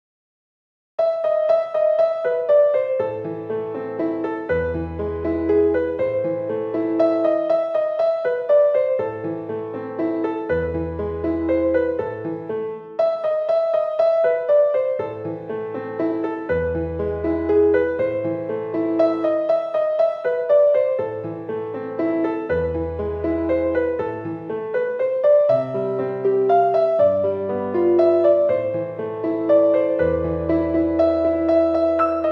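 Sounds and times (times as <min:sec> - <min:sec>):
piano piece in A minor: 0:01.0 - 0:32.3.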